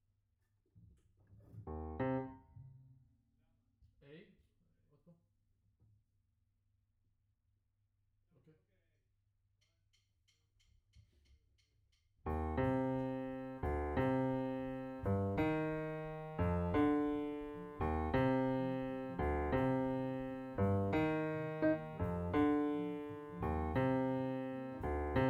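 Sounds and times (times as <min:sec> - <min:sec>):
piano note B: 0:01.7 - 0:02.4, 0:12.3 - 0:25.2.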